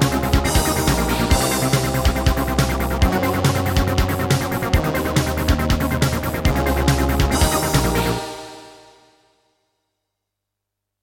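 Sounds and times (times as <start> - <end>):
Roland SC-88 sound module music: 0.0 - 8.7.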